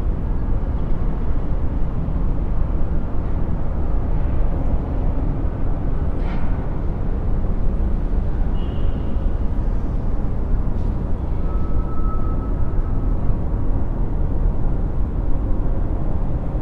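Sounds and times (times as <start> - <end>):
city traffic rumble: 0.0 - 16.6
whistle-like tone: 11.4 - 13.0.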